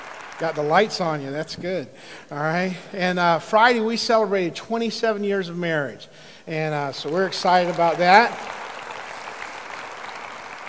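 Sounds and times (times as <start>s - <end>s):
audience applause: 0.0s - 1.0s, 7.0s - 10.6s
speech: 0.4s - 8.6s.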